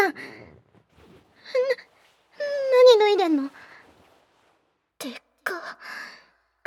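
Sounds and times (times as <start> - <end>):
ear licking ASMR: 0.1 - 4.7.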